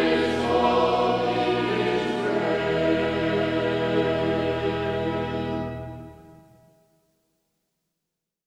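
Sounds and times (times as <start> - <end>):
choir singing hymns: 0.0 - 6.2.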